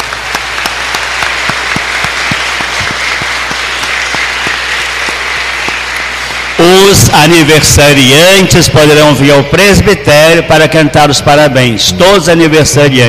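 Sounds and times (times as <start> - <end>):
audience applause for winners: 0.0 - 8.6
speech: 6.8 - 13.0.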